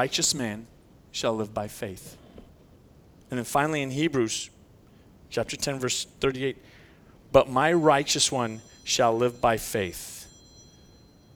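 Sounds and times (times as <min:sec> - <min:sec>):
speech: 0:00.0 - 0:02.2, 0:03.3 - 0:04.6, 0:05.3 - 0:06.7, 0:07.3 - 0:10.2
phone alarm ringing: 0:07.6 - 0:11.3.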